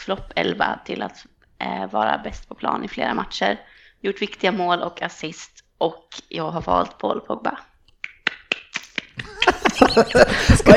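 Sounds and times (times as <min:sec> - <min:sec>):
speech: 0:00.0 - 0:07.7, 0:09.2 - 0:10.7
light sharp hand claps: 0:08.0 - 0:10.4
laughter: 0:09.2 - 0:10.7.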